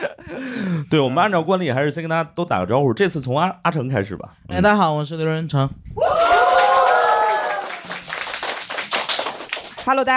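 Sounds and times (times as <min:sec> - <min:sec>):
speech: 0:00.9 - 0:06.4, 0:09.9 - 0:10.1
audience cheering and clapping: 0:06.0 - 0:09.9.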